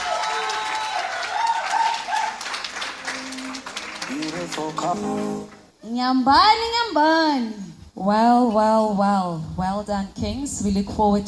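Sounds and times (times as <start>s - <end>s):
audience applause: 0.0s - 5.7s
speech: 4.5s - 11.2s.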